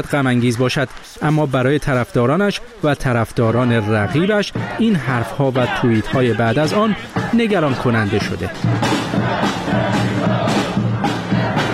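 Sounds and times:
speech: 0.0 - 10.4
crowd of supporters shouting a rhythmic chant: 3.5 - 11.7.

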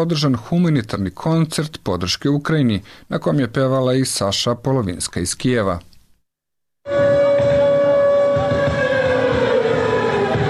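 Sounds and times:
speech: 0.0 - 5.9
air raid siren wailing to open a charity concert in Belgrade: 6.9 - 10.4.

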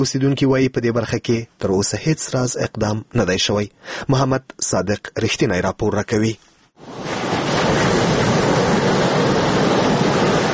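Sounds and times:
speech: 0.0 - 7.2
Arghandab river flowing with a rushing roar: 6.8 - 10.5.

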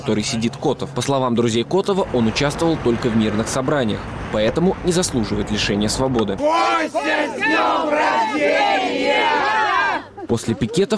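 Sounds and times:
speech: 0.0 - 10.9
crowd shouting birthday greetings in unison outside prison: 6.4 - 10.2.

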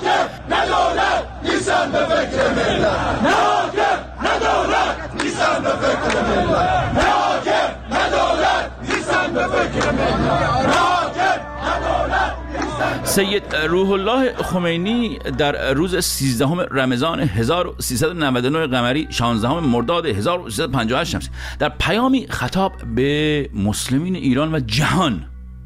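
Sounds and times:
crowd chanting slogans at Quds Day rally: 0.0 - 14.7
speech: 13.2 - 25.3.

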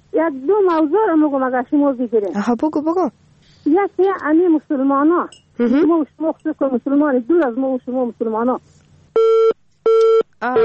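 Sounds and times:
speech: 0.2 - 9.4, 10.4 - 10.6
telephone busy tone after a call drops: 9.2 - 10.6.

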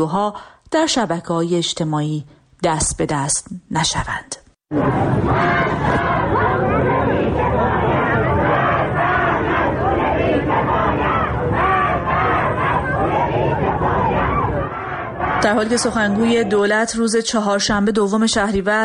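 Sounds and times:
speech: 0.0 - 6.4, 15.4 - 18.8
street protesters in Hamedan chanting slogans: 4.7 - 17.0.

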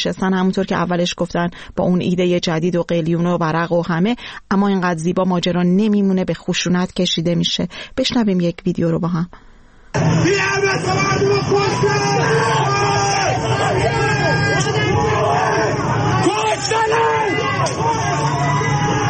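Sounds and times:
speech: 0.0 - 15.2
crowd shouting at protest: 10.0 - 19.0.

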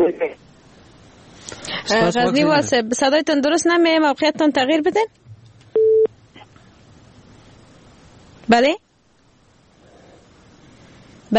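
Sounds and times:
speech: 1.9 - 5.2, 8.5 - 8.8
telephone busy tone after a call is disconnected: 5.8 - 6.1.

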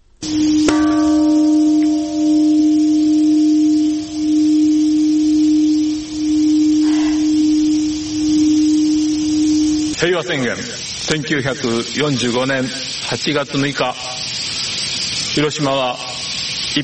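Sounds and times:
speech: 0.2 - 1.0, 10.0 - 14.1, 15.4 - 16.0
large memorial bell struck at ceremony: 0.2 - 10.0.

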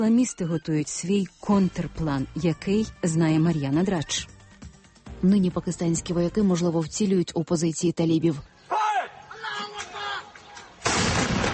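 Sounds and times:
speech: 0.0 - 4.4, 5.2 - 8.5
artillery fire: 10.8 - 11.5.

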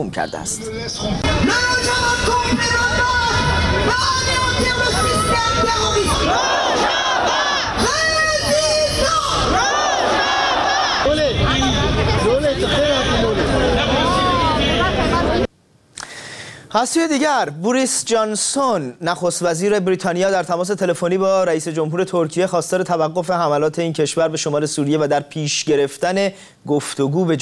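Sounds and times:
speech: 0.0 - 7.9, 16.7 - 27.4
protest demonstration crowd chanting: 1.2 - 15.5.

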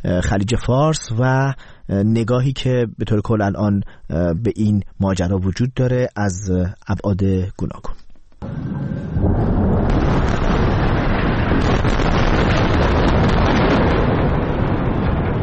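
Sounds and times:
speech: 0.0 - 8.6
bombing explosions in the Gaza Strip: 8.4 - 15.4.

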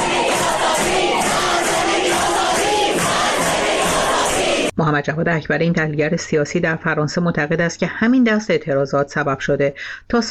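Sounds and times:
protest crowd chanting and shouting: 0.0 - 4.7
speech: 4.8 - 10.2.

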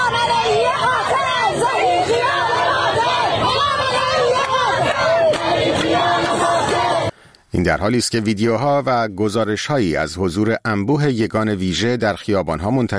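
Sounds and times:
street protesters chanting slogans: 0.0 - 7.2
speech: 7.6 - 12.9.

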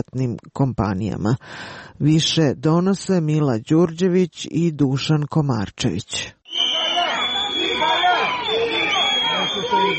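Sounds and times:
speech: 0.0 - 6.4
protest crowd shouting: 6.5 - 9.9
shrill whistles: 6.5 - 9.9.

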